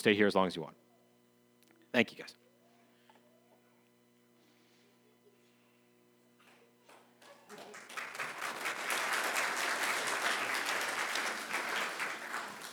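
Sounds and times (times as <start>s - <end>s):
speech: 0.0s - 0.9s, 1.9s - 2.4s
audience clapping: 6.9s - 12.7s.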